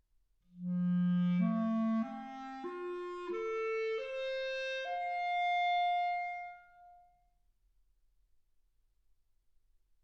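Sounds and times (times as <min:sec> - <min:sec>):
clarinet: 0:00.5 - 0:07.2.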